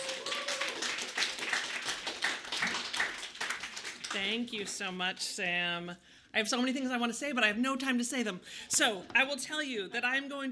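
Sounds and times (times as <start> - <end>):
audience clapping: 0.0 - 4.8
speech: 4.1 - 10.5.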